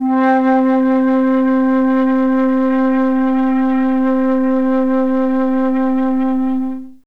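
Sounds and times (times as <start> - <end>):
classic orchestra flute note C3: 0.0 - 7.0.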